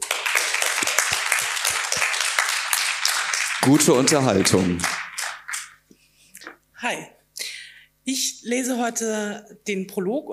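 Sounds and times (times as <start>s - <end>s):
audience applause: 0.0s - 5.8s
speech: 3.6s - 5.0s, 6.8s - 7.2s, 8.0s - 10.3s.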